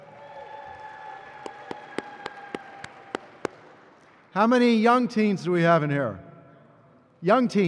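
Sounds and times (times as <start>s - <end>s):
applause: 0.0s - 4.3s
speech: 4.4s - 6.2s, 7.2s - 7.6s.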